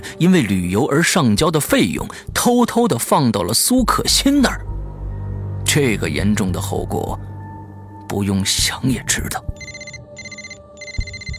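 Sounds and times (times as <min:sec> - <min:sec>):
speech: 0:00.1 - 0:04.7, 0:05.7 - 0:07.3, 0:08.1 - 0:09.5
mobile phone ringtone: 0:09.6 - 0:11.3.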